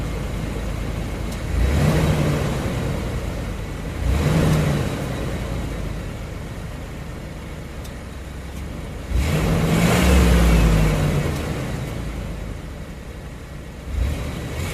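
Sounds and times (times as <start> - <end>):
van engine starting and driving off: 0.0 - 14.7.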